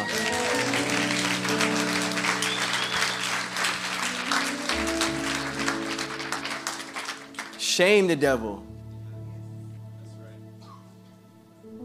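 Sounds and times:
audience clapping: 0.0 - 8.2
speech: 7.8 - 8.7.

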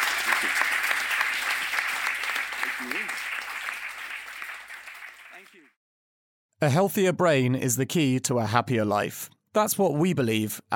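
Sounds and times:
crowd applauding: 0.0 - 5.8
person cheering: 2.5 - 3.4
speech: 6.6 - 10.7.

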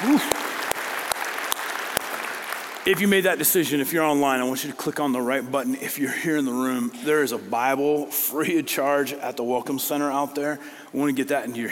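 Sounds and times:
crowd applauding: 0.0 - 3.2
speech: 2.9 - 11.6.

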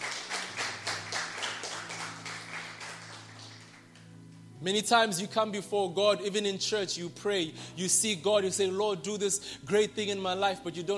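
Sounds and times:
audience clapping hands: 0.0 - 4.1
speech: 4.6 - 10.9.

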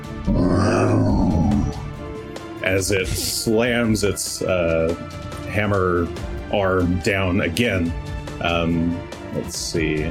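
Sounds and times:
person voicing a low groan imitating a creaking tree: 0.3 - 1.9
speech: 2.7 - 10.0.

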